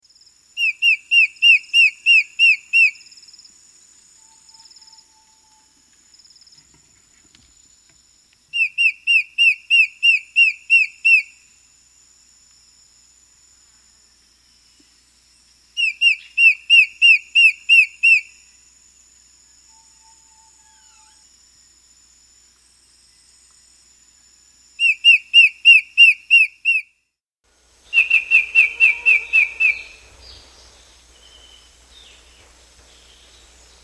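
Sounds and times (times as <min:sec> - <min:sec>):
black-headed antbird song in South America: 0:00.6 - 0:03.0, 0:08.5 - 0:11.4, 0:15.8 - 0:18.3, 0:19.6 - 0:21.2, 0:24.8 - 0:26.9, 0:27.8 - 0:33.8.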